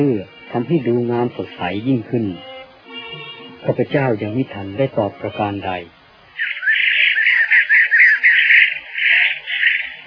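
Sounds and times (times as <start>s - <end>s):
speech: 0.0s - 2.5s, 3.6s - 6.5s
bird calling: 6.3s - 10.0s.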